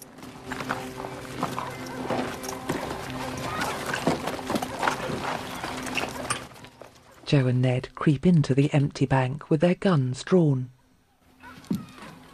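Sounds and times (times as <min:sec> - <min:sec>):
horses' hooves clopping as they are ridden up to a bank: 0:00.0 - 0:07.3, 0:11.4 - 0:12.3
speech: 0:07.3 - 0:10.8.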